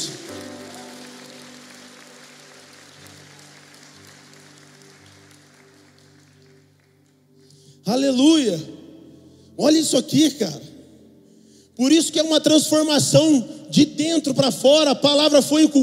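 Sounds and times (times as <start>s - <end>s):
audience applauding: 0.0s - 7.4s
speech: 7.9s - 8.8s, 9.6s - 10.7s, 11.8s - 15.8s.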